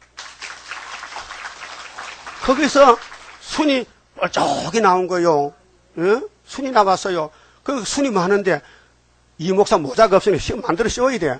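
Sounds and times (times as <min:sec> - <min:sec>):
audience applause: 0:00.0 - 0:03.7
speech: 0:02.5 - 0:08.8, 0:09.4 - 0:11.3.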